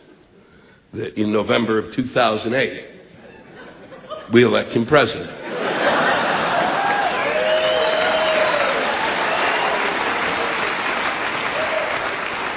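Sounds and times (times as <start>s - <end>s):
speech: 0.9s - 2.9s, 4.3s - 5.4s
laughter: 3.1s - 4.5s, 5.3s - 8.8s
audience applause: 6.2s - 12.5s.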